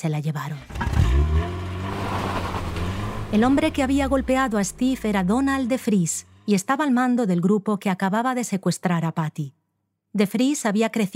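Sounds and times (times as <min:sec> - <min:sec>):
speech: 0:00.0 - 0:02.2, 0:03.3 - 0:11.1
Chevrolet car driving away: 0:00.6 - 0:05.9.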